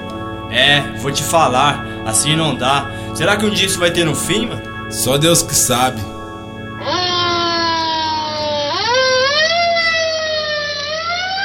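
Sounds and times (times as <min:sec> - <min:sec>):
ambulance siren: 0:00.0 - 0:11.4
speech: 0:00.5 - 0:06.2.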